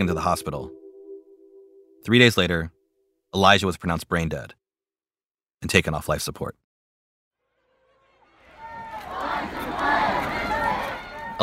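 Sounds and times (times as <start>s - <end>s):
speech: 0.0s - 0.8s, 2.0s - 4.6s, 5.6s - 6.6s
street protest crowd shouting: 8.4s - 11.4s.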